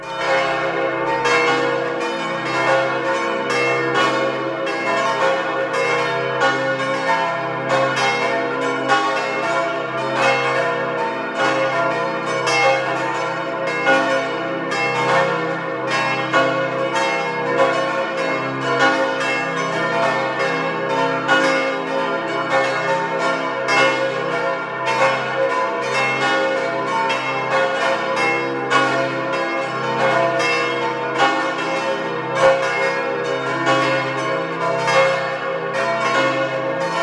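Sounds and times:
church bells of St. Nikolaus parish church in Elbigenalp ringing the noon peal: 0.0 - 37.0.

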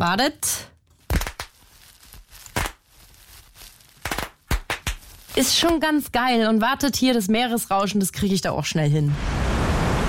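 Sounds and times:
speech: 0.0 - 0.7, 5.4 - 9.5
bubble wrap popping: 0.9 - 6.0.

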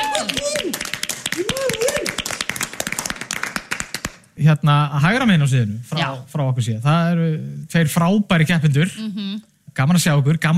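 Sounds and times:
audience clapping at a karaoke-themed show: 0.0 - 4.4
speech: 4.4 - 10.5.

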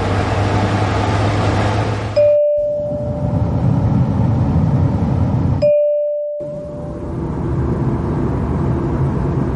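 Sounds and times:
fan whooshing: 0.0 - 9.5
low hum: 0.0 - 9.5
soft electronic tone: 2.2 - 3.6, 5.6 - 7.2.

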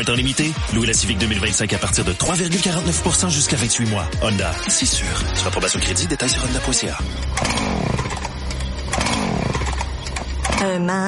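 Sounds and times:
speech: 0.0 - 8.1, 10.6 - 11.0
chainsaw running outside: 7.0 - 10.6.

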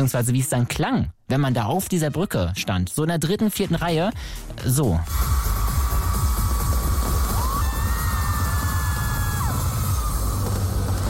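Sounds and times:
speech: 0.0 - 5.5
fireworks crackling and thumping: 5.1 - 11.0
crowd cheering with shouts and whoops: 5.8 - 11.0.

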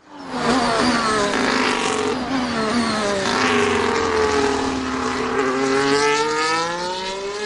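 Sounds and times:
Formula One racing car passing on track: 0.1 - 7.4.

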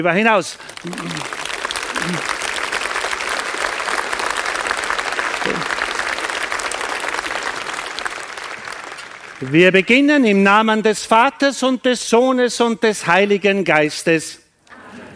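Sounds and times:
speech: 0.0 - 1.4, 2.0 - 2.4, 9.4 - 14.4
audience applause: 0.5 - 9.8.

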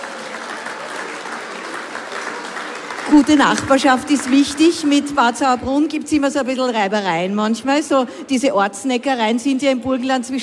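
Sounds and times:
audience applause: 0.0 - 5.0
speech: 3.1 - 10.4.

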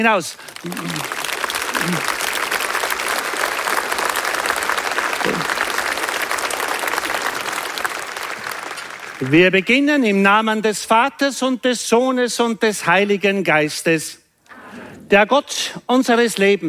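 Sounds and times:
speech: 0.0 - 1.2, 1.8 - 2.2, 9.2 - 14.2, 15.1 - 16.6
crowd applauding in town square: 0.0 - 9.5
brief low voice sounds: 0.6 - 1.2, 1.8 - 2.1.

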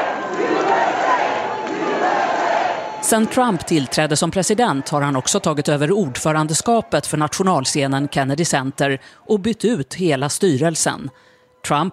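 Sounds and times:
audience booing: 0.0 - 8.9
speech: 3.1 - 11.9.

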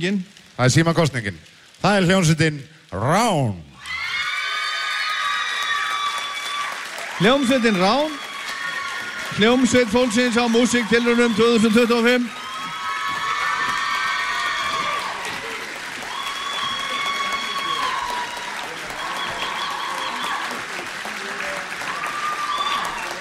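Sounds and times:
speech: 0.0 - 3.7, 7.2 - 8.2, 9.3 - 12.4
shrill whoops and high shouts: 3.8 - 20.7, 21.8 - 23.1
audience applause for a band at a music competition: 3.8 - 23.1.

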